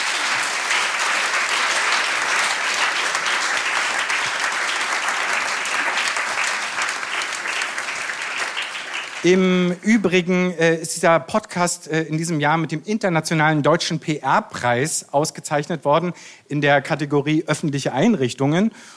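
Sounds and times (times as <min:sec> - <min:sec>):
audience applause: 0:00.0 - 0:09.9
speech: 0:09.2 - 0:18.9.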